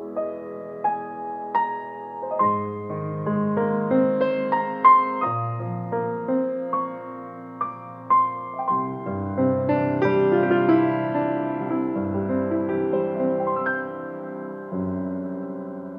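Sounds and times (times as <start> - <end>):
piano: 0.0 - 15.9.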